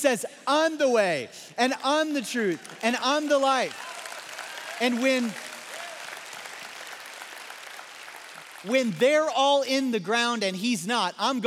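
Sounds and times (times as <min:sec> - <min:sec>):
speech: 0:00.0 - 0:04.0, 0:04.8 - 0:05.5, 0:08.6 - 0:11.4
audience clapping: 0:01.6 - 0:09.3.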